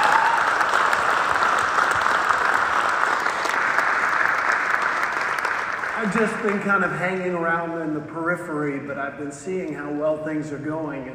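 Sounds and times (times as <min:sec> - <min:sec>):
audience applause: 0:00.0 - 0:06.9
speech: 0:06.1 - 0:11.1.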